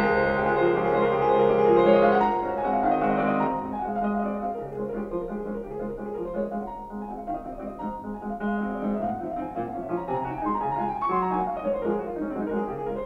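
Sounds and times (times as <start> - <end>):
piano waltz in D flat: 0.0 - 13.0.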